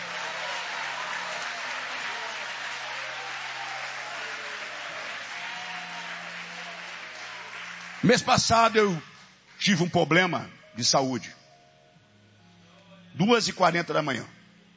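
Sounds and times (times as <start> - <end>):
audience clapping hands: 0.0 - 9.6
speech: 8.0 - 11.4, 13.2 - 14.4.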